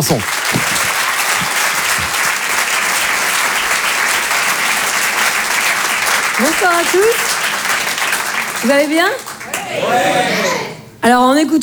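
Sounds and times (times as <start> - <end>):
speech: 0.0 - 0.7, 6.4 - 7.3, 8.6 - 11.6
audience applause: 0.0 - 11.0
laughter: 0.3 - 11.0.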